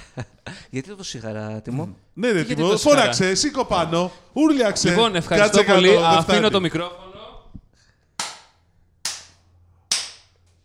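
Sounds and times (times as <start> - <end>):
speech: 0.2 - 7.1
slow hand claps: 8.2 - 10.6.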